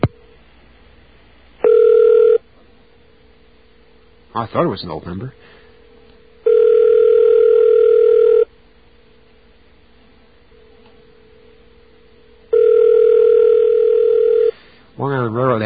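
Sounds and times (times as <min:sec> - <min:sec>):
ringback tone over a telephone line: 0:01.6 - 0:02.4, 0:06.4 - 0:08.5, 0:12.5 - 0:14.5
speech: 0:04.4 - 0:05.6, 0:15.0 - 0:15.6.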